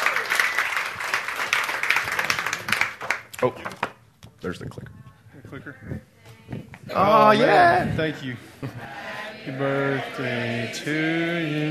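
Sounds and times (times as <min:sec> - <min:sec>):
audience applause: 0:00.0 - 0:03.3
speech: 0:03.4 - 0:11.6.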